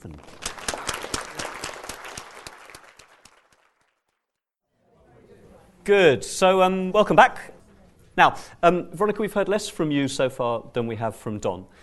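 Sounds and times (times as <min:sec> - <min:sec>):
speech: 0:00.0 - 0:00.4, 0:05.8 - 0:07.5, 0:08.2 - 0:11.8
audience applause: 0:00.0 - 0:04.2
murmuring room noise: 0:04.8 - 0:05.9.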